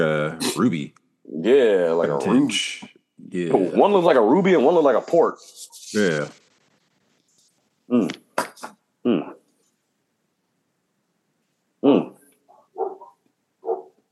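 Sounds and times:
speech: 0:00.0 - 0:06.4, 0:07.9 - 0:09.3, 0:11.8 - 0:12.0
dog barking: 0:12.5 - 0:14.0.

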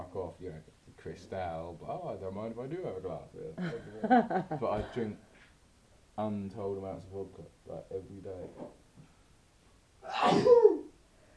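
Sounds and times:
speech: 0:00.1 - 0:05.3, 0:06.2 - 0:08.8, 0:10.0 - 0:10.8
sneeze: 0:10.0 - 0:10.9.

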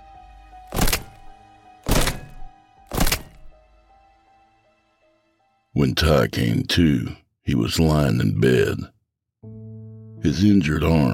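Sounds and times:
wrench hitting bone: 0:00.7 - 0:01.3, 0:01.9 - 0:03.5
speech: 0:05.8 - 0:09.0, 0:10.2 - 0:11.1.

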